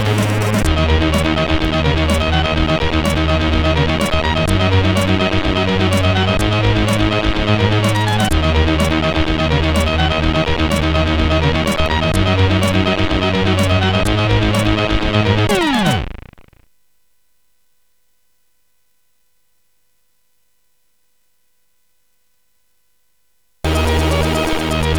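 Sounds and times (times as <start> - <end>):
SID CSG8580R5 chiptune intro music: 0.0 - 16.2, 23.7 - 24.9.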